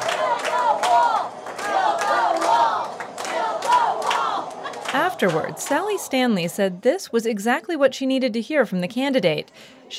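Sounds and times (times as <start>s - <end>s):
rally crowd chanting: 0.0s - 6.6s
speech: 5.2s - 9.9s.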